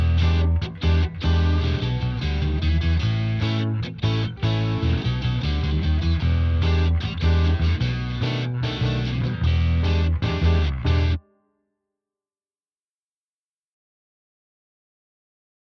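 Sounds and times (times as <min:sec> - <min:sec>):
drumless backing track: 0:00.0 - 0:11.2.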